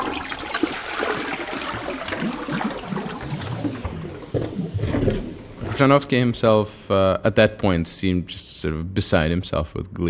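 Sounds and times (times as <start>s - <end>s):
toilet flushing: 0.0s - 6.4s
speech: 5.8s - 10.0s.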